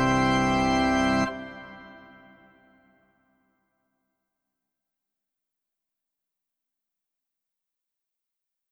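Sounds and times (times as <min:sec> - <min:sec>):
organ tutti on a Yamaha NP-15 digital piano: 0:00.0 - 0:02.5.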